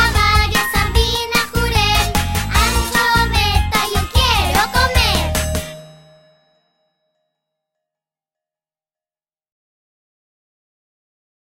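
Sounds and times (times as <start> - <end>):
karaoke singing: 0.0 - 5.8.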